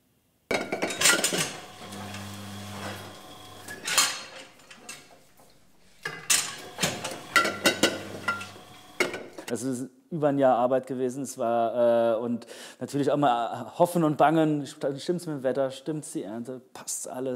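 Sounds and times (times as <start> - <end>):
wine bottles clinking at a winery on an old manor estate: 0.5 - 9.5
speech: 9.5 - 17.3.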